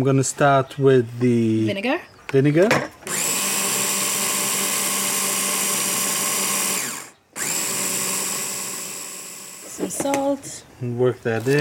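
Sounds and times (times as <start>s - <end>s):
speech: 0.0s - 2.9s, 9.9s - 11.5s
blender blitzing ingredients: 3.0s - 10.2s.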